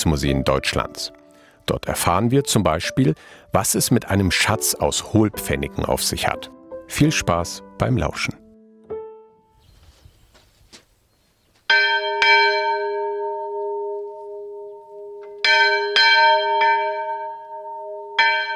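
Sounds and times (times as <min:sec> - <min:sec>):
speech: 0:00.0 - 0:08.4
small church bell in Freilandmuseum Diesdorf rung by pulling rope: 0:11.7 - 0:18.5.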